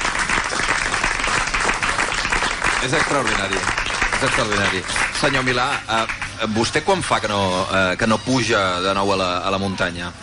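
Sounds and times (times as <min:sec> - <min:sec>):
audience applause at a Catalan human-tower castells event: 0:00.0 - 0:07.1
speech: 0:02.8 - 0:10.2.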